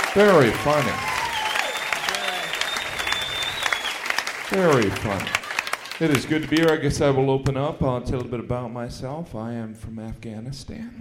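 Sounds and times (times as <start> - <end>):
audience applause: 0.0 - 7.0
speech: 0.2 - 1.1, 4.5 - 5.4, 6.0 - 11.0.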